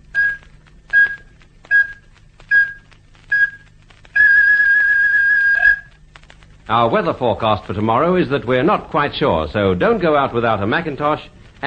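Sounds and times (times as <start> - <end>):
faint low hum: 0.0 - 11.6
radio time signal pips: 0.1 - 6.0
speech: 6.7 - 11.6.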